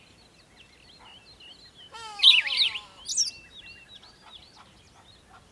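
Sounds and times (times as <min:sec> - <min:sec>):
bird singing sharp slurred squeaky notes in the morning: 0:01.9 - 0:03.3.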